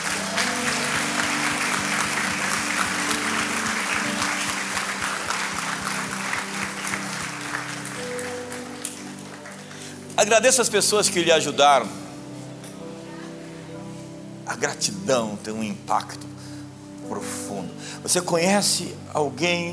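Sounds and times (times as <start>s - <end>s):
audience clapping: 0.0s - 10.6s
speech: 10.2s - 12.0s, 14.5s - 19.7s.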